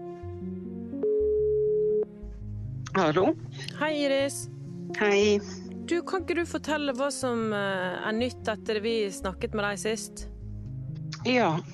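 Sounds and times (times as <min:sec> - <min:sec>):
soft music: 0:00.0 - 0:11.7
outgoing telephone call ringing tone: 0:01.0 - 0:02.1
speech: 0:03.0 - 0:10.3, 0:11.2 - 0:11.7.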